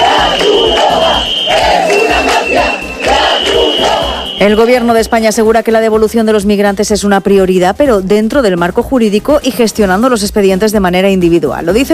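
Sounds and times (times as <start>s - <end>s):
protesters shouting: 0.0s - 4.4s
speech: 4.4s - 11.9s.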